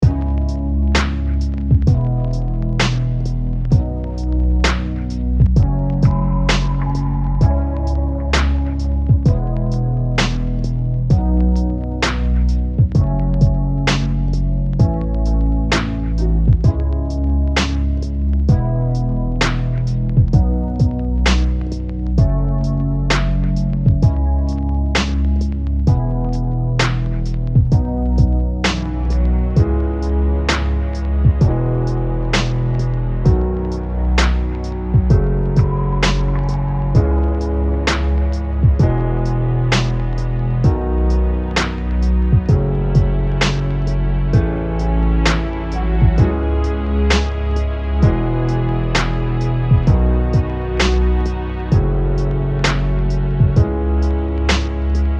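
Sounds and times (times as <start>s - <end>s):
music loop: 0.0s - 55.1s.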